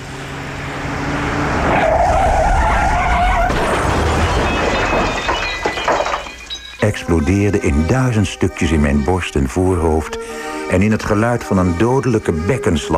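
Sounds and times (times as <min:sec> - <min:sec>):
car engine roar: 0:00.0 - 0:04.0
car tires squealing at speed: 0:00.0 - 0:06.8
speech: 0:06.8 - 0:12.9.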